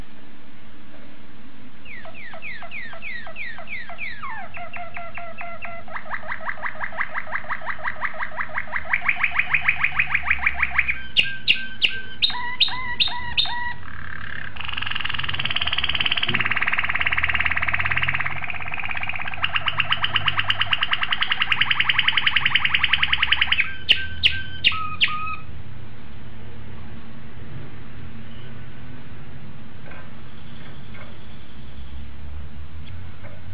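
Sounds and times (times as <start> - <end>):
domestic canary singing: 1.8 - 25.5.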